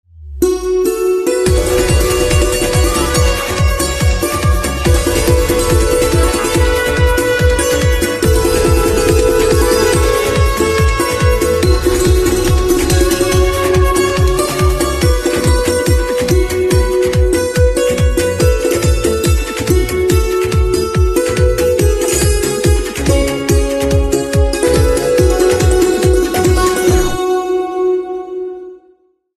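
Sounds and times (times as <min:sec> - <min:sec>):
santoor instrumental ringtone: 0:00.4 - 0:29.0.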